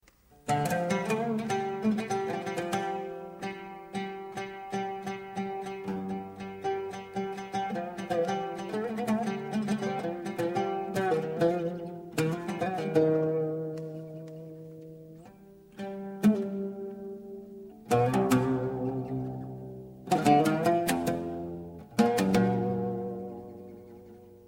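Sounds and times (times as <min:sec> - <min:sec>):
oud taksim: 0:00.0 - 0:24.4.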